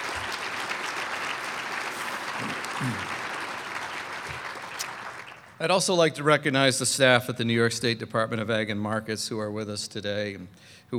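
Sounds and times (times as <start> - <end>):
audience applauding: 0.0 - 5.7
speech: 2.4 - 3.2, 5.6 - 10.9.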